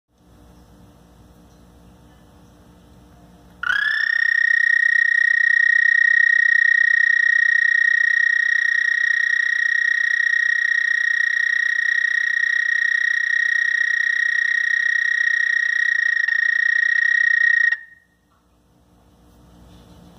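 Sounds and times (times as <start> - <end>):
Houston toad calling: 3.6 - 18.2.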